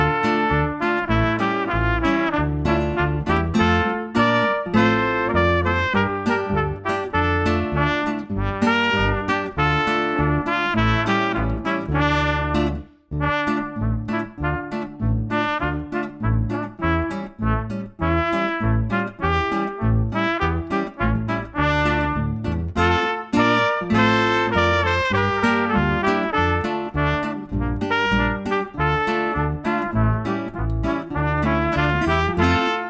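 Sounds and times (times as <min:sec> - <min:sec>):
trumpet duet playing a kasatschok dance: 0:00.0 - 0:32.8.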